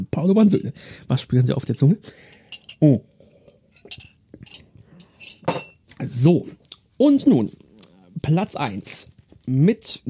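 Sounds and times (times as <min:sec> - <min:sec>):
speech: 0:00.0 - 0:03.2, 0:06.1 - 0:07.6, 0:08.2 - 0:10.0
porcelain coffee cups and cutlery clinking: 0:03.7 - 0:05.9.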